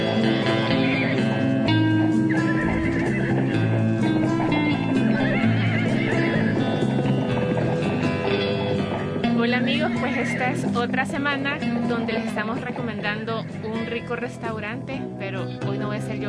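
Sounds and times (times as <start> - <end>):
horse neighing: 0.0 - 13.9
speech: 10.3 - 16.2.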